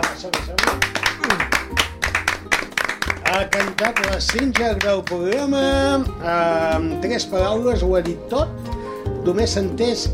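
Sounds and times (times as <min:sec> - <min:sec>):
applause: 0:00.0 - 0:05.6
speech: 0:03.3 - 0:10.1.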